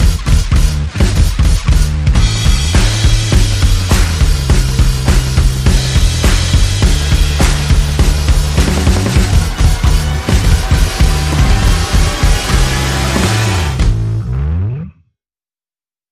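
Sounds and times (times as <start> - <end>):
percussion: 0.0 - 14.3
bass: 0.0 - 15.2
sound effects: 2.2 - 15.0.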